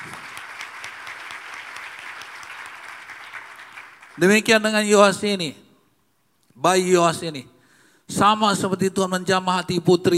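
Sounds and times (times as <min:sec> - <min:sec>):
audience applause: 0:00.0 - 0:04.3
speech: 0:04.2 - 0:05.6, 0:06.6 - 0:07.5, 0:08.1 - 0:10.1.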